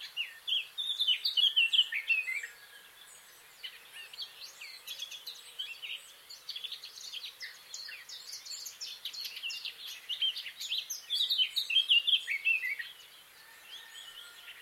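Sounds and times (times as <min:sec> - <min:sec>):
Eurasian blackcap warbling song: 0:00.0 - 0:14.6.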